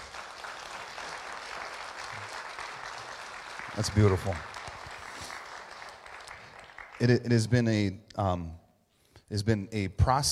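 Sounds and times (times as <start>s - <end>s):
audience applause: 0.0s - 7.2s
speech: 3.8s - 4.5s, 7.0s - 8.6s, 9.3s - 10.3s.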